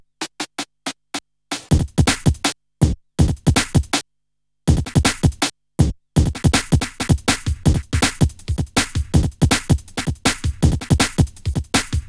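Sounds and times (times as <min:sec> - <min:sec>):
jungle breakbeat music: 0:01.7 - 0:02.5, 0:03.2 - 0:04.0, 0:04.7 - 0:05.4, 0:06.2 - 0:12.0.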